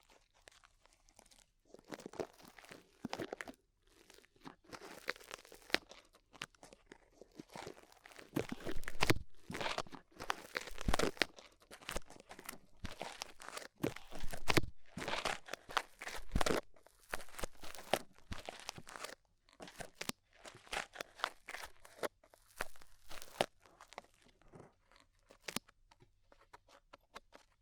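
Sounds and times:
crinkling and crunching scratches of rhinestones and clay removed in ear cleaning: 0:00.0 - 0:27.5.

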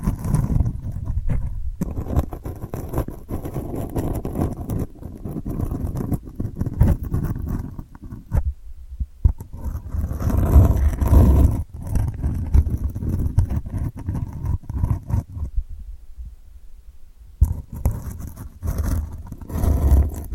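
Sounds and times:
delicate scratching: 0:00.0 - 0:08.6, 0:09.2 - 0:15.6, 0:17.4 - 0:20.3.

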